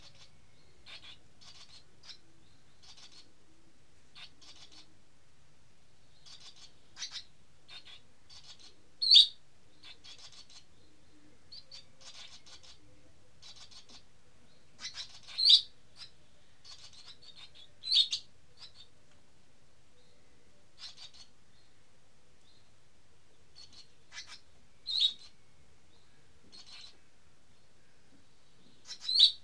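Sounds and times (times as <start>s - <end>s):
bird calls as high chirps and buzzy bursts: 0.0s - 3.3s, 4.2s - 4.9s, 6.1s - 12.8s, 13.4s - 18.9s, 20.8s - 21.8s, 23.5s - 27.7s, 28.4s - 29.4s.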